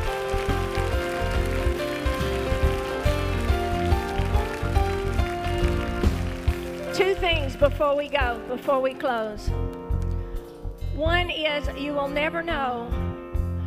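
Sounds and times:
audience clapping hands: 0.0 - 8.4
speech: 7.6 - 9.6, 11.0 - 13.0.

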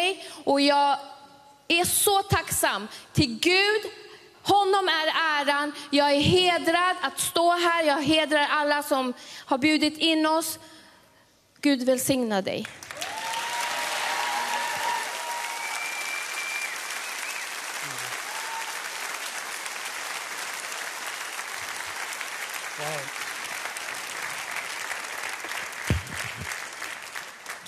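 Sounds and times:
speech: 0.4 - 10.8, 11.6 - 12.8
audience applause: 12.8 - 27.6.

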